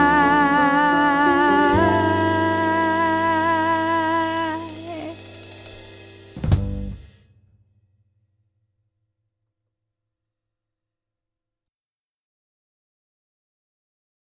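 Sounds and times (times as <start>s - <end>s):
tenor singing: 0.0s - 5.7s.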